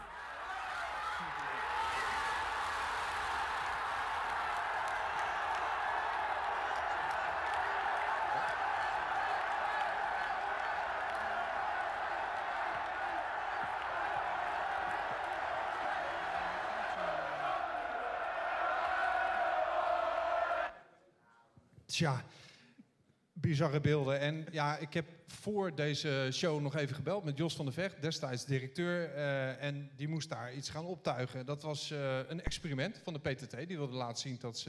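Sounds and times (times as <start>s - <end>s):
football supporters cheering after a goal: 0.0s - 20.8s
speech: 22.0s - 22.5s, 23.4s - 34.6s.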